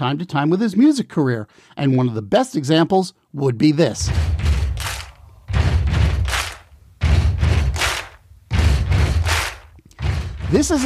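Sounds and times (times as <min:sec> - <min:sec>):
speech: 0:00.0 - 0:04.5, 0:10.5 - 0:10.8
stomping in a studio: 0:04.0 - 0:10.8
hand clapping in a studio: 0:04.2 - 0:10.8.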